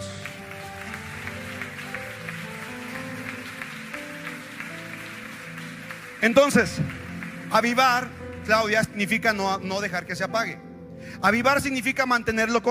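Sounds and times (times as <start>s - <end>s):
audience applause: 0.0s - 9.2s
speech: 6.2s - 12.6s.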